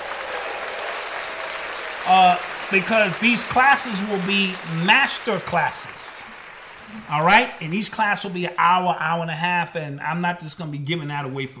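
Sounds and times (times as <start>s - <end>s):
applause: 0.0s - 8.5s
speech: 2.0s - 6.3s, 6.9s - 11.5s.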